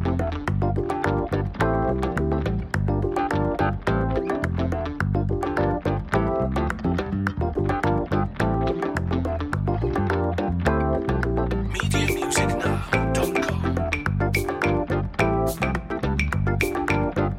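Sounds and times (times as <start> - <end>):
brisk classy night underscore music: 0.0 - 17.3.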